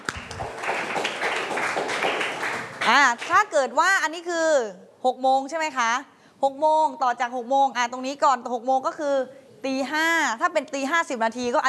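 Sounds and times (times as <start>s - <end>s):
students clapping in classroom: 0.0s - 3.4s
speech: 2.9s - 11.6s.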